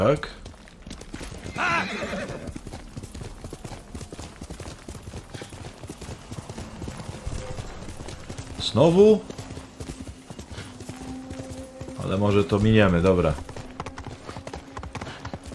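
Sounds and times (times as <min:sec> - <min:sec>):
speech: 0:00.0 - 0:00.4, 0:08.7 - 0:09.4, 0:12.1 - 0:13.5
horse hooves clip-clopping: 0:00.0 - 0:15.5
horse neighing: 0:01.5 - 0:02.6.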